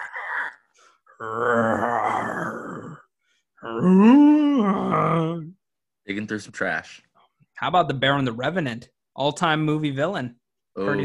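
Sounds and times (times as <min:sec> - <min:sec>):
person imitating bear growl: 0:00.0 - 0:05.6
speech: 0:01.2 - 0:01.7, 0:03.8 - 0:04.2, 0:06.1 - 0:11.0.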